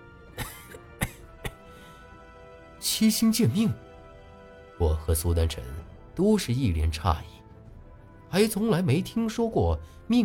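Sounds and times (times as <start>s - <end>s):
person coughing: 0.4s - 1.8s
speech: 2.8s - 3.8s, 5.1s - 7.4s, 8.3s - 10.2s.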